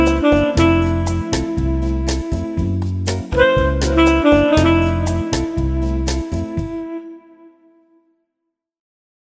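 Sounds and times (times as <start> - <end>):
electric piano playing bossa nova: 0.0 - 7.3
tenor saxophone playing bossa nova: 0.0 - 8.0.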